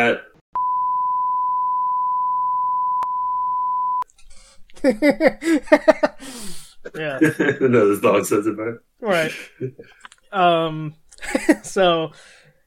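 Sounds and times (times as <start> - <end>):
speech: 0.0 - 0.3, 4.8 - 12.4
long mid-pitched censor bleep: 0.6 - 4.0
laughter: 4.8 - 6.3, 7.1 - 8.4, 11.2 - 11.7.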